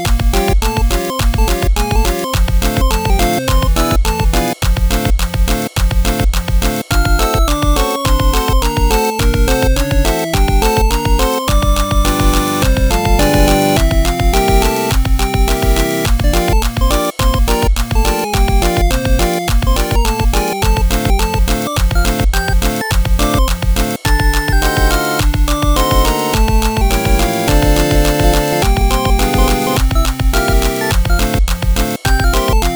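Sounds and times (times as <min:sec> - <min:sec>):
gypsy techno music: 0:00.0 - 0:32.7.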